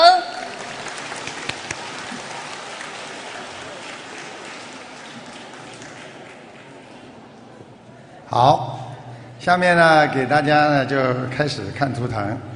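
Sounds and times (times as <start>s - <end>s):
audience applause: 0.2s - 7.4s
speech: 8.3s - 8.7s, 9.4s - 12.5s.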